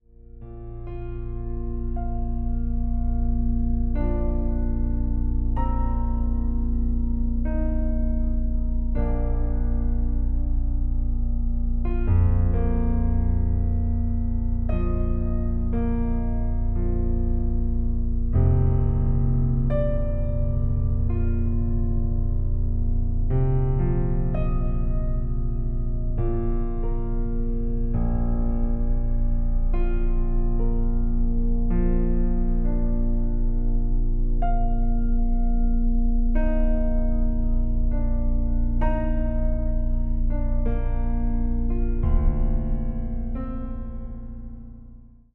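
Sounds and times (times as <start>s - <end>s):
piano: 0.0s - 45.3s.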